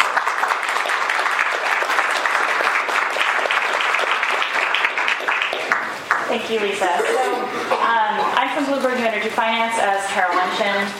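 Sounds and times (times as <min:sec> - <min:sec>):
audience round of applause: 0:00.0 - 0:06.4
speech: 0:06.5 - 0:10.9.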